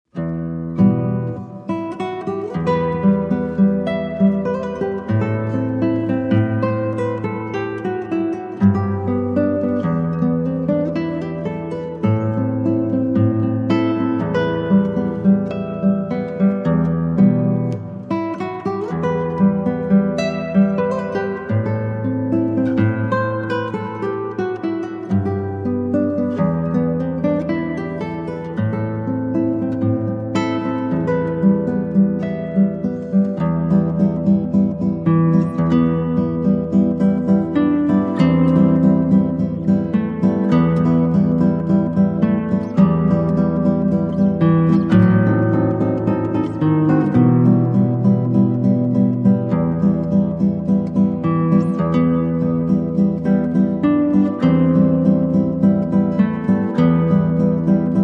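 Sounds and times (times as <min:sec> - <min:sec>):
original classical guitar piece: 0:00.0 - 0:58.0.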